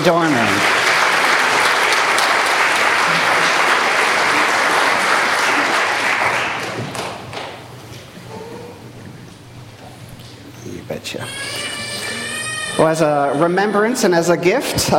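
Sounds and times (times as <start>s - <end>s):
speech: 0.0s - 0.8s, 12.8s - 14.9s
congregation applauding at a baptism: 0.0s - 7.7s.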